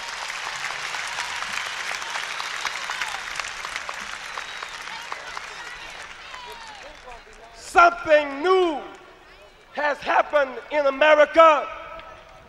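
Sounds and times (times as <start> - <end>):
audience applause: 0.0 - 8.0
speech: 7.8 - 9.0, 9.8 - 11.8.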